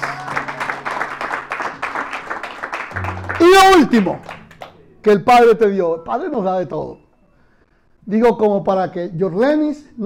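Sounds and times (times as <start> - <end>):
crowd clapping hands in praise: 0.0 - 4.8
speech: 3.5 - 4.4, 5.0 - 7.0, 8.0 - 10.0.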